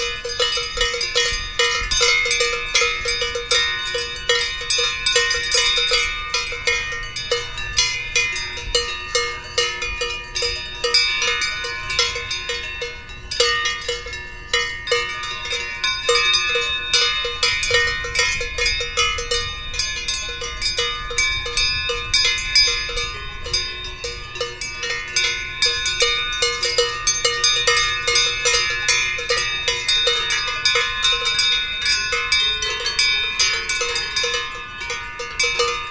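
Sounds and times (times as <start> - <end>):
bells ringing: 0.0 - 35.8.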